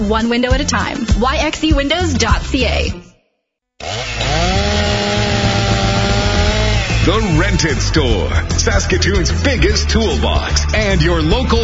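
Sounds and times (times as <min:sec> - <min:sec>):
speech: 0:00.0 - 0:03.0, 0:07.1 - 0:11.6
gas chainsaw cutting wood: 0:03.8 - 0:07.5.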